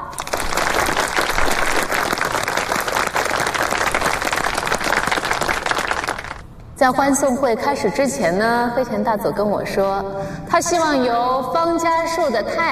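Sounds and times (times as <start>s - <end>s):
warm audience applause: 0.0s - 6.4s
speech: 6.8s - 12.7s.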